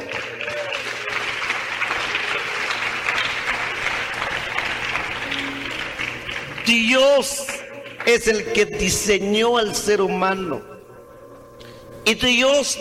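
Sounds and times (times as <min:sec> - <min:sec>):
audience applause: 0:00.0 - 0:08.3
speech: 0:06.7 - 0:07.4, 0:08.0 - 0:10.7, 0:12.0 - 0:12.7.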